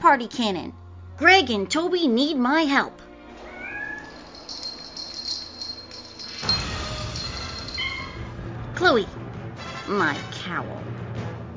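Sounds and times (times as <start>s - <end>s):
speech: 0.1s - 3.1s, 8.8s - 9.2s, 9.9s - 10.8s
kittens meowing: 3.4s - 4.2s.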